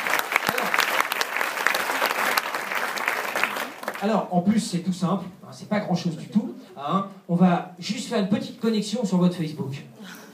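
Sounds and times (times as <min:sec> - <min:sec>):
crowd clapping: 0:00.0 - 0:04.2
speech: 0:04.0 - 0:10.2.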